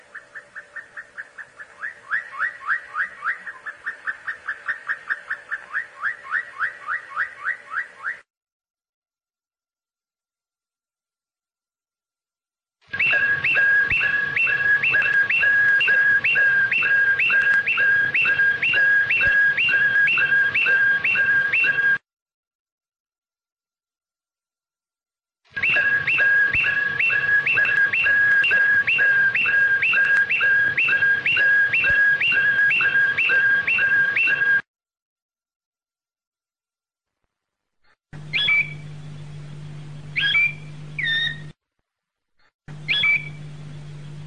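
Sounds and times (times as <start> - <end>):
canary singing whistled phrase: 0.1 - 8.2, 12.9 - 22.0, 25.6 - 34.6, 38.3 - 38.8, 40.1 - 41.5, 42.8 - 43.4.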